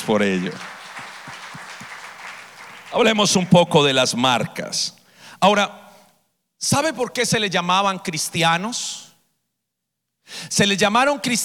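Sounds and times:
speech: 0:00.0 - 0:00.8, 0:02.9 - 0:05.8, 0:06.6 - 0:09.1, 0:10.3 - 0:11.4
audience applause: 0:00.0 - 0:03.6.

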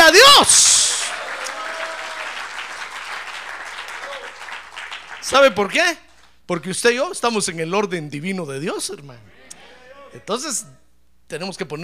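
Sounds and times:
audience applause: 0:00.7 - 0:05.5
speech: 0:05.3 - 0:09.4, 0:10.1 - 0:11.8.

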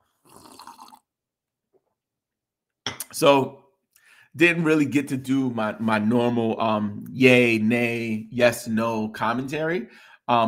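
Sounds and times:
loud airy slurp of coffee: 0:00.0 - 0:01.1
short soft gulp of swallowing: 0:00.1 - 0:01.0
speech: 0:03.1 - 0:03.6, 0:04.4 - 0:10.4.

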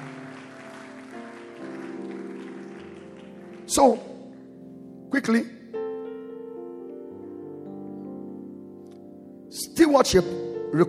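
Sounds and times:
audience clapping: 0:00.0 - 0:04.6
speech: 0:03.7 - 0:04.1, 0:05.1 - 0:05.6, 0:09.9 - 0:10.8.

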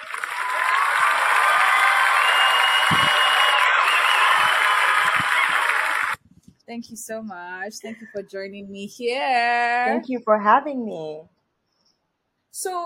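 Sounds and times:
cheering: 0:00.0 - 0:06.2
clapping: 0:00.0 - 0:06.2
speech: 0:06.7 - 0:11.3, 0:12.6 - 0:12.8.

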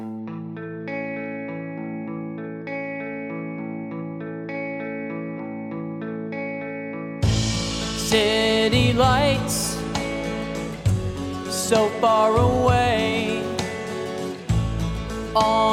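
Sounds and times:
bright noisy burst: 0:07.2 - 0:15.7
retro-sounding instrumental track with synth chords and bass line: 0:07.2 - 0:15.7
speech: 0:08.1 - 0:09.8, 0:11.7 - 0:13.2, 0:15.4 - 0:15.7.

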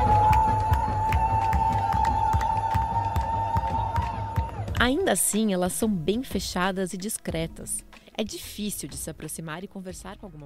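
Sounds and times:
football stadium crowd cheering: 0:00.0 - 0:04.8
speech: 0:04.8 - 0:10.4.

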